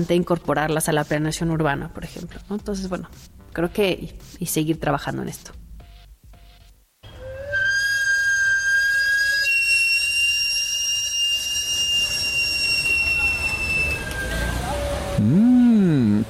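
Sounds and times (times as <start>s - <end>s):
speech: 0.0s - 5.6s
sweet-potato vendor's steam whistle: 7.0s - 15.7s.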